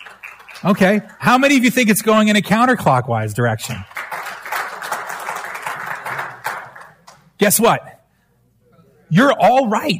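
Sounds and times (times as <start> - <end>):
audience applause: 0.0 - 1.2, 3.8 - 7.2
speech: 0.6 - 4.0, 7.4 - 8.0, 9.1 - 9.9.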